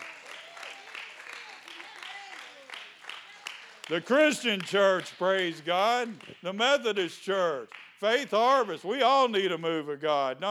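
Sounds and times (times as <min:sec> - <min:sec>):
audience applause: 0:00.0 - 0:04.3
speech: 0:03.9 - 0:10.4.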